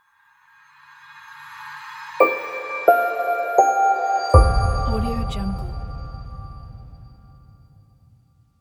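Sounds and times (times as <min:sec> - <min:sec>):
smooth logo jingle: 0:02.2 - 0:07.6.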